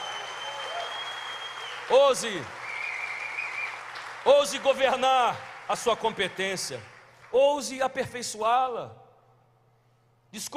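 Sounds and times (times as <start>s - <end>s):
audience applause: 0.0s - 7.4s
speech: 1.9s - 2.6s, 4.2s - 9.0s, 10.3s - 10.5s.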